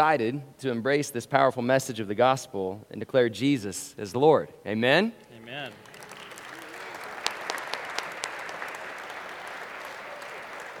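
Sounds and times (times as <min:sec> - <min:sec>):
speech: 0:00.0 - 0:05.9
audience applause: 0:05.6 - 0:10.7.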